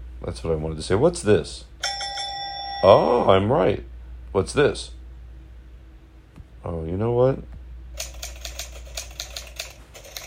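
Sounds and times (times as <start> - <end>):
speech: 0.2 - 1.7, 2.8 - 5.0, 6.6 - 7.6
old typewriter clacking: 8.0 - 10.2.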